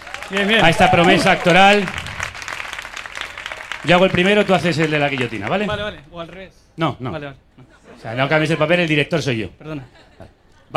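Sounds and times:
audience applause: 0.0 - 6.1
speech: 0.3 - 2.0, 3.8 - 10.7.

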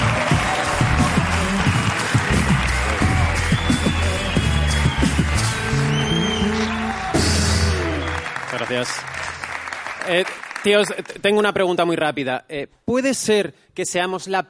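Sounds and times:
audience applause: 0.0 - 11.2
speech: 8.8 - 9.2, 10.1 - 14.4.

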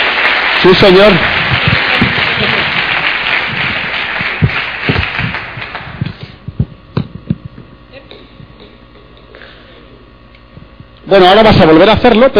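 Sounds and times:
audience applause: 0.0 - 6.4
speech: 0.6 - 1.6, 11.1 - 12.3.

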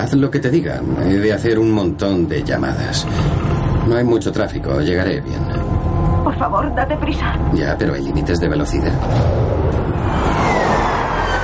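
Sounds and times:
speech: 0.0 - 5.7, 6.4 - 10.2
faint police siren: 5.6 - 11.4
two police patrol cars speeding past: 9.5 - 11.4.

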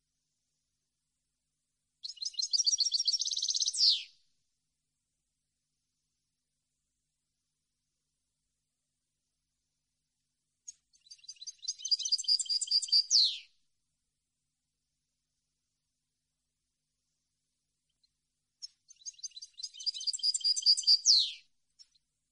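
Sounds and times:
European goldfinch song: 2.0 - 4.2, 10.6 - 13.5, 17.8 - 22.1.

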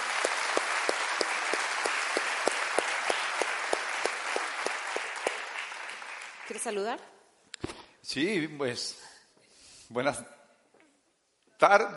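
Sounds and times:
audience applause: 0.0 - 6.9
speech: 6.6 - 7.2, 8.1 - 9.1, 9.9 - 10.4, 11.6 - 11.9.

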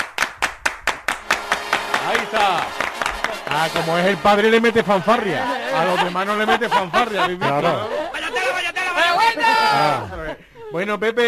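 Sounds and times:
audience applause in sharp crisp hand claps: 0.0 - 4.4
laughter: 2.0 - 10.9
speech: 2.1 - 2.8, 3.5 - 8.0, 9.7 - 11.2.

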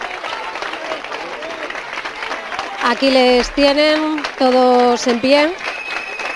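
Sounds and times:
group of young people applauding: 0.0 - 6.3
speech: 2.9 - 5.8.

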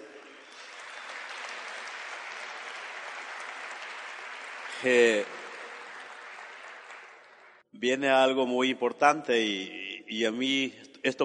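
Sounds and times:
audience applause: 0.0 - 7.6
speech: 4.8 - 5.4, 7.8 - 11.2.

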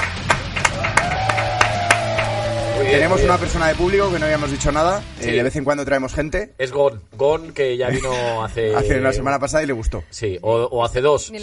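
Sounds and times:
audience applause: 0.0 - 3.4
speech: 2.9 - 11.4.

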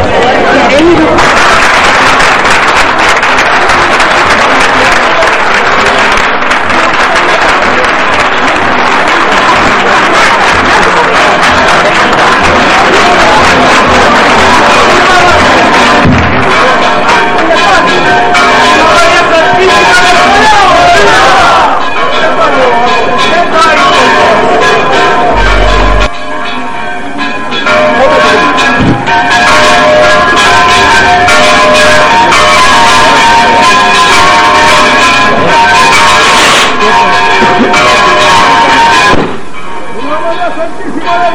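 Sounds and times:
bells of Santa María pealing during procession: 0.0 - 41.3
crowd voices: 0.0 - 41.3.

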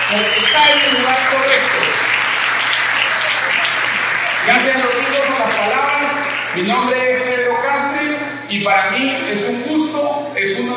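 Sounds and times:
audience applause: 0.0 - 7.4
speech: 0.1 - 1.8, 6.6 - 7.5, 8.6 - 10.7.

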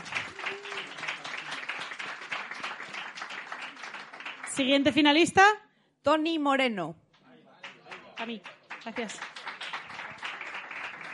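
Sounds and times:
loud audience applause: 0.0 - 4.9, 7.6 - 11.1
speech: 4.6 - 7.0, 8.2 - 9.3.

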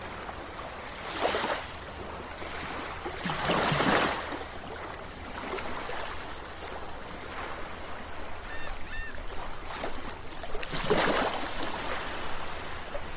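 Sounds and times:
sea waves breaking at the shoreline: 0.0 - 13.1
steady low wash of sea at the shoreline: 0.0 - 13.1
faint bird chirps: 8.5 - 9.2.

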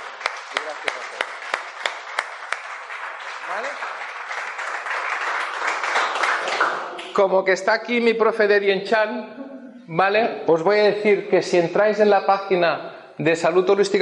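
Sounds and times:
audience applause: 0.0 - 7.2
speech: 0.7 - 1.4, 3.5 - 4.2, 7.2 - 14.0.

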